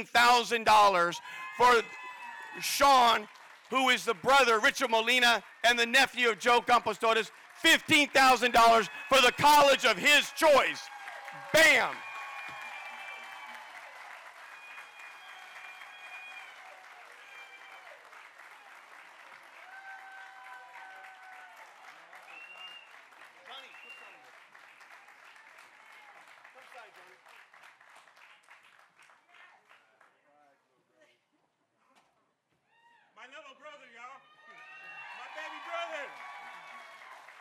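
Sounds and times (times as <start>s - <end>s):
speech: 0.0s - 12.0s
audience applause: 0.9s - 30.0s, 34.5s - 37.3s
cheers and whoops: 1.0s - 3.3s, 7.9s - 22.9s, 25.3s - 26.2s, 32.7s - 33.1s, 34.2s - 37.3s.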